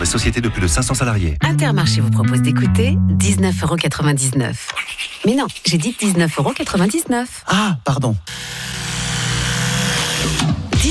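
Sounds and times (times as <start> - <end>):
speech: 0.0 - 8.8
electric toothbrush buzzing: 8.3 - 10.7.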